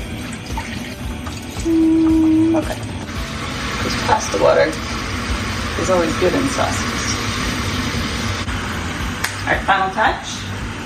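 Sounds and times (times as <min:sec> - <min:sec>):
chicken broth pouring into a pan sauce: 0:00.0 - 0:08.7
speech: 0:02.6 - 0:02.9, 0:03.8 - 0:04.9, 0:05.8 - 0:07.1, 0:09.5 - 0:10.4.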